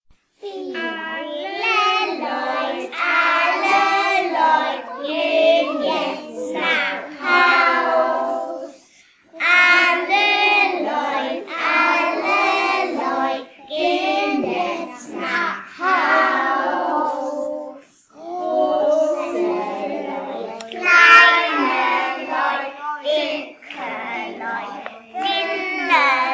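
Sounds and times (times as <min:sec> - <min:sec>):
children singing: 0:00.4 - 0:26.3.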